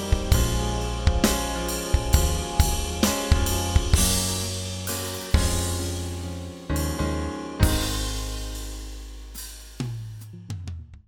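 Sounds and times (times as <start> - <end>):
americana music: 0.0 - 8.6.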